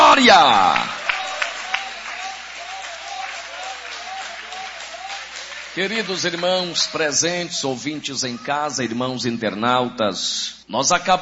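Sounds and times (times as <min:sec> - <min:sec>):
audience clapping: 0:00.0 - 0:08.2
speech: 0:00.2 - 0:01.0, 0:05.8 - 0:11.2.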